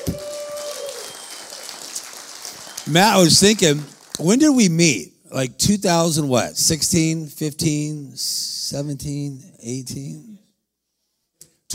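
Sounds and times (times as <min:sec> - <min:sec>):
audience clapping: 0:00.0 - 0:05.0
speech: 0:02.9 - 0:10.4.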